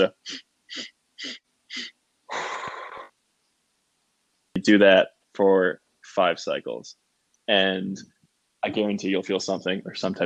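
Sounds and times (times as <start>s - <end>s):
speech: 0.0s - 2.5s, 4.6s - 10.2s
loud sharp sniffs in: 0.2s - 3.1s.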